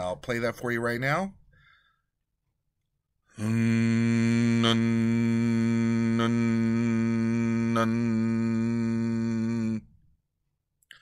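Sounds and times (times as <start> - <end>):
speech: 0.1 - 1.4, 3.4 - 5.2, 7.8 - 8.3
monk humming while kneeling in temple: 3.3 - 10.0.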